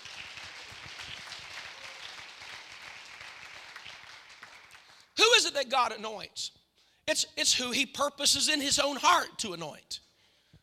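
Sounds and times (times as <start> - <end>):
audience clapping hands: 0.0 - 5.2
speech: 5.4 - 10.0.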